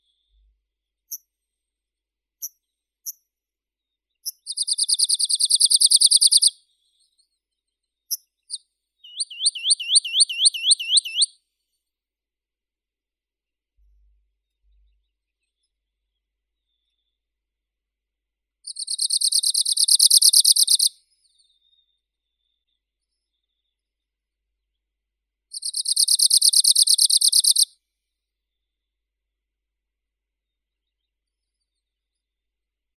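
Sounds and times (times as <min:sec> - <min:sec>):
Arctic warbler Phylloscopus borealis singing: 0:04.5 - 0:06.5, 0:09.1 - 0:11.3, 0:18.7 - 0:20.9, 0:25.6 - 0:27.7.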